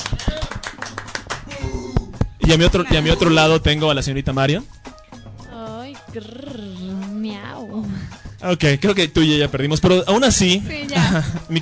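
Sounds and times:
applause from a TV comedy show audience: 0.0 - 1.7
speech: 2.5 - 4.8, 6.1 - 6.6, 8.4 - 11.5.

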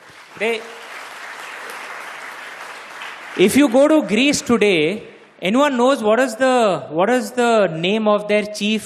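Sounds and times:
audience applause: 0.0 - 4.1
speech: 0.4 - 0.8, 3.4 - 8.8.

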